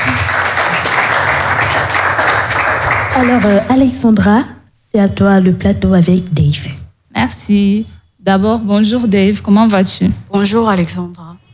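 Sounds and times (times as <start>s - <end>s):
crowd applauding: 0.0s - 3.9s
speech: 3.2s - 11.4s.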